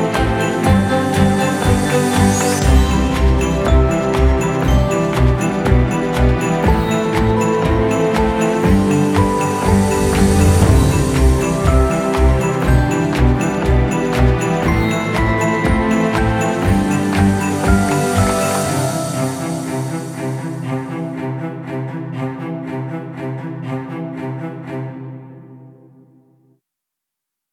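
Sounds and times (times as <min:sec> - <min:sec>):
Christmas atmosphere: 0:00.0 - 0:21.9.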